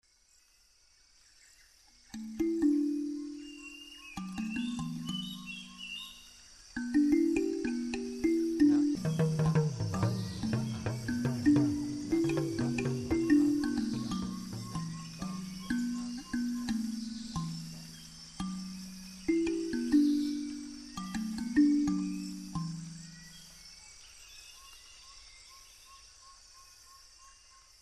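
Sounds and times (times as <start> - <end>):
kalimba: 2.1 - 23.6.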